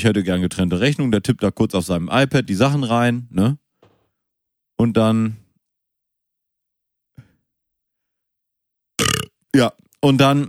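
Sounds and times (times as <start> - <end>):
speech: 0.0 - 3.6, 4.8 - 5.4, 9.0 - 10.4
burp: 9.0 - 9.4.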